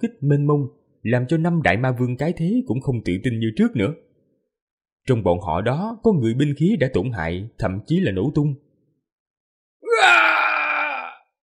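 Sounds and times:
speech: 0.0 - 4.0, 5.0 - 8.6
defiant anguished roar: 9.8 - 11.2.

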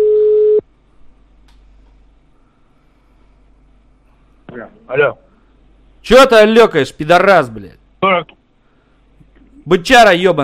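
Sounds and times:
telephone call tone beep: 0.0 - 0.6
speech: 5.0 - 5.2, 6.1 - 7.8, 9.7 - 10.4.

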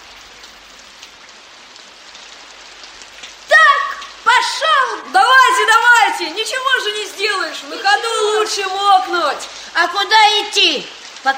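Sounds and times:
first slow raindrops falling: 0.0 - 11.3
speech: 5.1 - 11.3.

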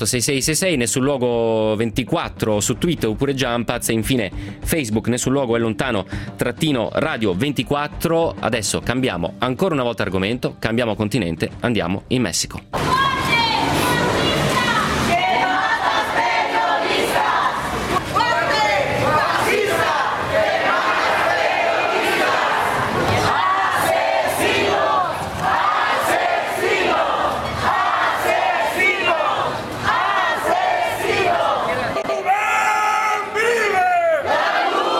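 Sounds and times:
speech: 0.0 - 13.2
large protest crowd shouting and yelling: 12.8 - 34.9.

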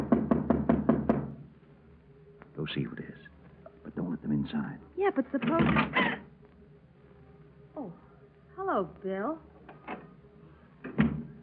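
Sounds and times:
knocking on a door: 0.0 - 1.4
speech: 2.6 - 3.3, 4.0 - 6.2, 8.7 - 9.5.

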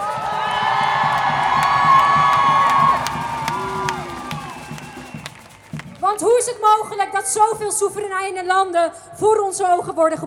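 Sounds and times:
sharp whoops: 0.0 - 5.6
large crowd shouting and cheering at a feminist march: 0.0 - 7.5
speech: 6.6 - 10.2.

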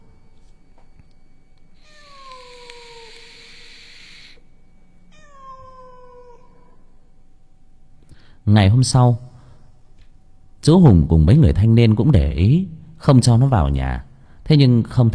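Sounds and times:
hiss: 0.0 - 15.1
cat yowling at night: 1.8 - 4.4, 5.1 - 6.9
speech: 8.4 - 9.3, 10.6 - 15.1.

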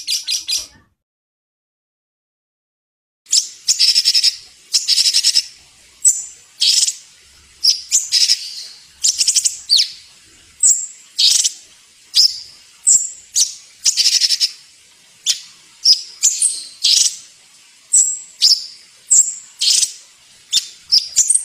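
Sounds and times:
songbird masteran song with squeaky chattering and sharp chirps: 0.0 - 0.8, 3.3 - 7.0, 7.6 - 10.0, 10.6 - 11.6, 12.2 - 14.6, 15.2 - 17.2, 17.9 - 21.4.

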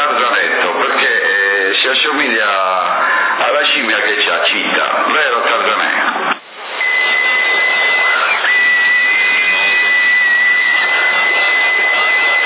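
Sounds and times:
CB radio static: 0.0 - 12.4
whistling over CB radio channel: 6.6 - 12.4.

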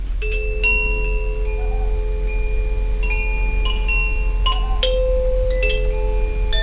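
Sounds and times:
small bell ringing: 0.2 - 6.6.

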